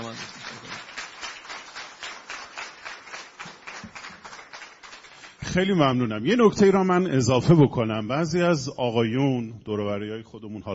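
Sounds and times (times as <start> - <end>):
audience applause: 0.0 - 5.6
speech: 5.5 - 10.7.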